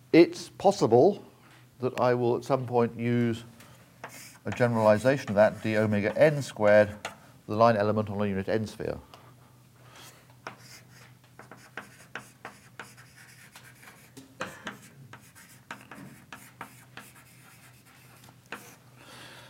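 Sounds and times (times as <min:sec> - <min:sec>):
speech: 0:00.1 - 0:09.1
lecturer writing on a classroom board: 0:04.0 - 0:06.4, 0:10.4 - 0:18.8.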